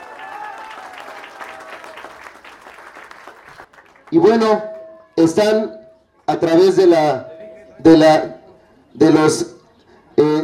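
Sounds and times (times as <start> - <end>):
audience applause: 0.0 - 4.1
speech: 4.1 - 8.4, 9.0 - 9.5.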